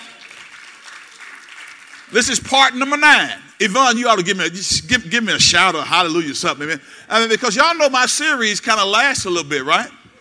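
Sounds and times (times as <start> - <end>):
church audience clapping: 0.0 - 3.0
speech: 2.1 - 10.0.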